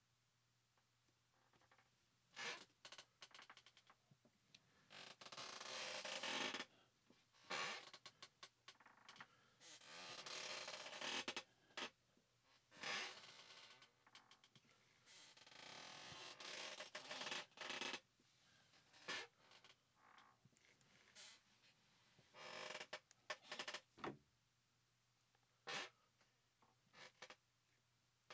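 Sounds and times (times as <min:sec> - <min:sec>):
creaky chair: 0:01.4 - 0:04.0, 0:04.9 - 0:06.7, 0:07.4 - 0:12.0, 0:12.7 - 0:18.0, 0:18.9 - 0:21.4, 0:22.4 - 0:24.2, 0:25.7 - 0:26.0, 0:26.9 - 0:27.4.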